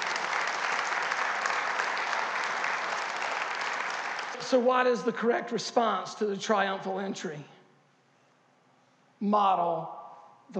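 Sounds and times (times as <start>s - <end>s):
audience applause: 0.0s - 4.4s
speech: 4.5s - 7.6s, 9.2s - 10.5s.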